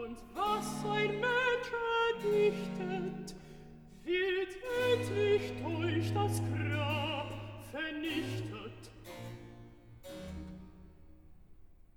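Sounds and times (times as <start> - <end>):
alto singing recitative: 0.0 - 3.4, 4.0 - 9.2.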